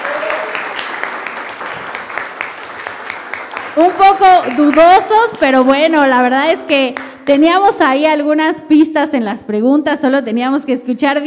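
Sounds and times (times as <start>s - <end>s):
audience applause: 0.0s - 6.0s
speech: 3.8s - 11.2s.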